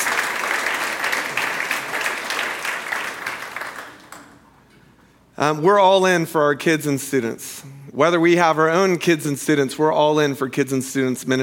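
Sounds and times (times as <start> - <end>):
audience applause: 0.0 - 4.4
speech: 5.4 - 11.4.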